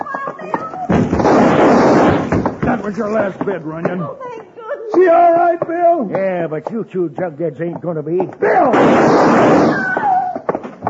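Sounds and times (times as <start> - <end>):
gunshot in a radio drama: 0.9 - 2.6, 8.6 - 10.0
speech: 2.8 - 4.3, 5.0 - 9.8.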